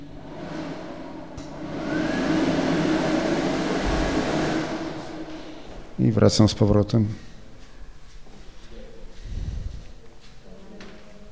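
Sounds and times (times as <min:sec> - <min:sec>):
hair dryer running: 0:00.0 - 0:06.0
speech: 0:06.0 - 0:07.3.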